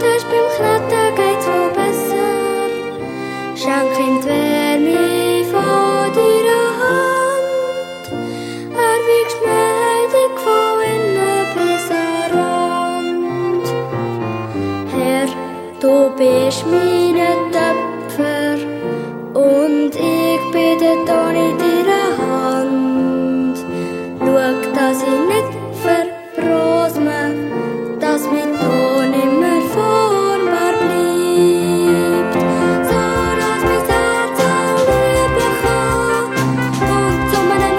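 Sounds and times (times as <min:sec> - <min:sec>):
piano: 0:00.0 - 0:37.7
violin: 0:00.0 - 0:37.7
drum kit: 0:32.9 - 0:37.7
flugelhorn: 0:33.0 - 0:37.7.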